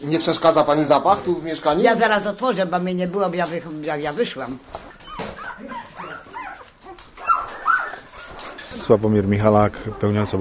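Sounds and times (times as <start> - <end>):
speech: 0.0 - 4.9, 8.8 - 10.3
dog whining and whimpering: 4.8 - 10.3.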